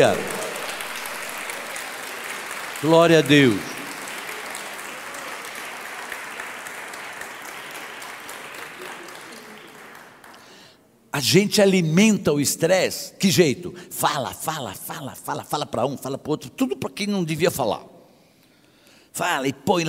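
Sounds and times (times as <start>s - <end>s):
speech: 0.0s - 0.3s, 2.8s - 3.7s, 11.2s - 17.9s, 19.2s - 19.8s
audience applauding: 0.0s - 10.6s.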